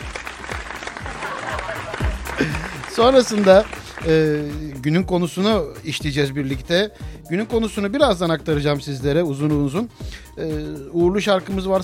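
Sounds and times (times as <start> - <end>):
applause: 0.0 - 4.8
laughter: 0.8 - 3.8
speech: 2.4 - 11.8.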